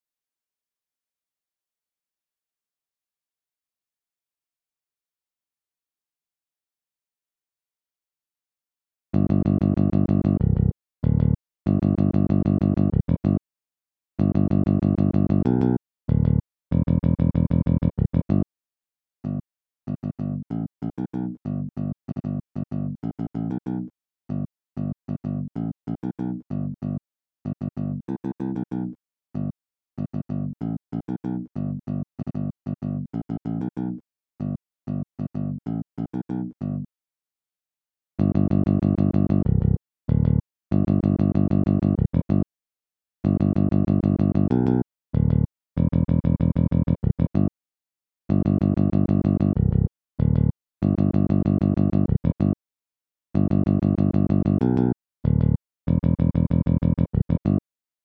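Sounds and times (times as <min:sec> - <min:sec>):
bass: 0:09.1 - 0:13.4, 0:14.2 - 0:18.5, 0:19.2 - 0:36.9, 0:38.2 - 0:42.5, 0:43.2 - 0:47.5, 0:48.3 - 0:52.6, 0:53.4 - 0:57.6.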